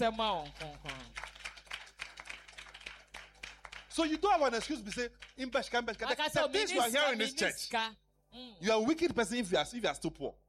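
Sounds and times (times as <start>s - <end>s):
speech: 0.0s - 0.8s, 4.0s - 10.4s
church congregation clapping during a service: 0.0s - 6.8s.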